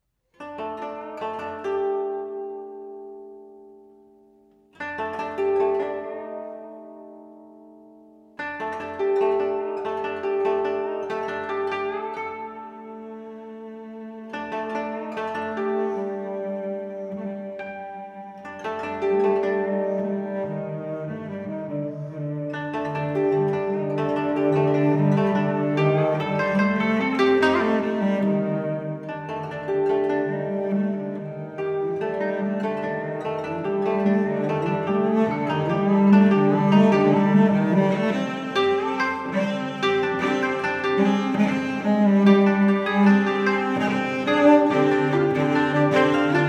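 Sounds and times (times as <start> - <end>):
cello: 0.0 - 7.8, 8.4 - 46.4
koto: 0.3 - 46.4.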